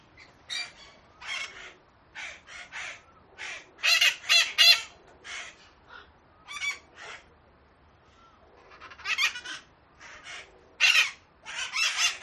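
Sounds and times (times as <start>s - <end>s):
parrots squawking: 0.5s - 5.6s, 6.4s - 7.3s, 8.7s - 12.2s.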